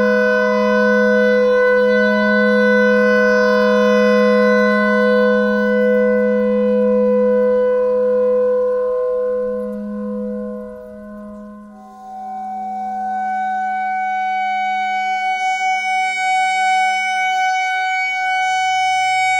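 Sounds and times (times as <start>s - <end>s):
clarinet notes: 0.0s - 19.3s
clarinet thread noise: 1.4s - 15.0s.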